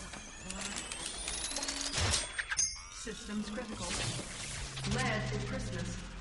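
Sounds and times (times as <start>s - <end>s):
rapid keyboard typing: 0.0s - 2.3s
speech: 3.1s - 6.1s.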